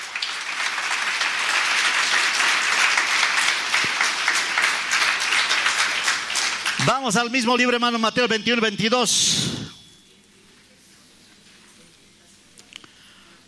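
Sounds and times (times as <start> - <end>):
audience clapping: 0.0 - 8.0
speech: 7.0 - 9.6.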